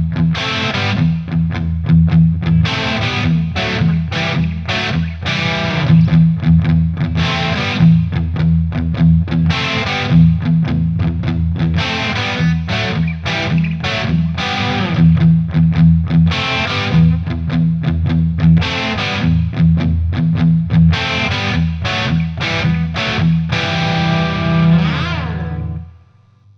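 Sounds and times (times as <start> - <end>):
Digitech RP255 guitar effects processor: 0.0 - 26.5.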